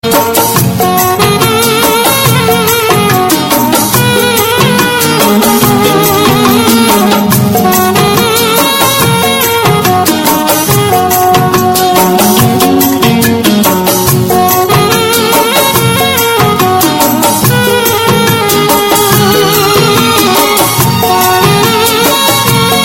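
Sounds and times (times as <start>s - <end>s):
instrumental music: 0.0s - 22.8s.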